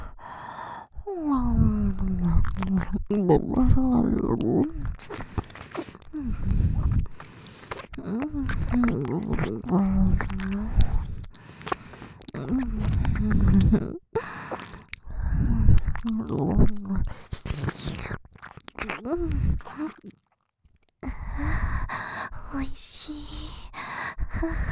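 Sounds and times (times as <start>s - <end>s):
breathy sighs and gasps: 0.0s - 2.8s, 3.6s - 17.3s, 19.0s - 20.1s, 21.0s - 24.6s
speech: 2.4s - 5.3s, 6.2s - 7.2s, 8.0s - 10.8s, 13.7s - 14.0s
wet ear-licking mouth sounds in Japanese ASMR roleplay: 4.1s - 21.0s.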